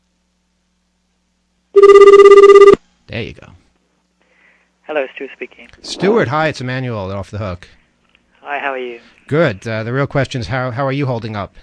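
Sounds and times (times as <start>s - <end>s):
telephone ringing on an overseas call: 1.8s - 2.8s
speech: 3.2s - 3.6s, 4.9s - 7.8s, 8.5s - 11.6s.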